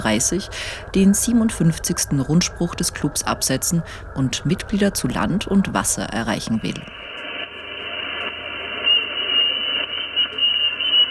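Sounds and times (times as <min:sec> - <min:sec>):
speech: 0:00.0 - 0:07.0
radio interference with whistling noises: 0:06.9 - 0:11.0.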